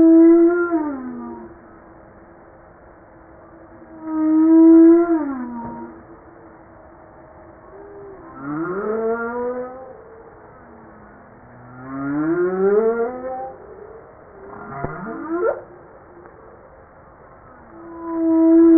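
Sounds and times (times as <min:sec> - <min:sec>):
humpback whale song: 0:00.0 - 0:01.6, 0:03.8 - 0:06.1, 0:07.7 - 0:16.6, 0:17.5 - 0:18.7.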